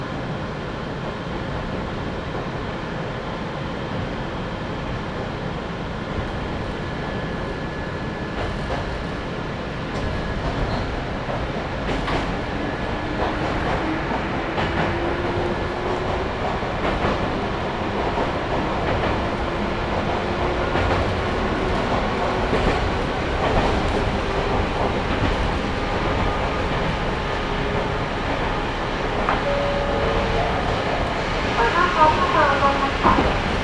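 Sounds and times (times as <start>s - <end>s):
Sangi Railway train wheels and motor rumbling: 0.0s - 33.6s
rail clicks and knocks: 9.9s - 33.6s.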